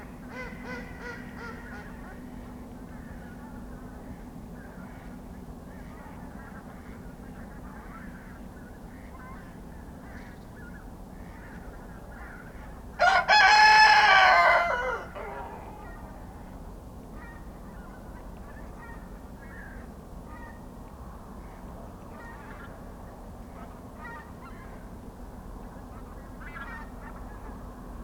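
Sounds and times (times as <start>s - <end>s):
rooster crowing in a pen at a small farmhouse in Kawcze, Poland: 13.0s - 15.9s.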